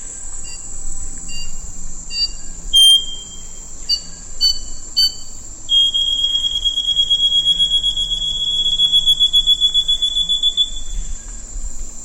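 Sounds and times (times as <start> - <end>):
wing-banded wren whistling song: 0.0 - 12.0.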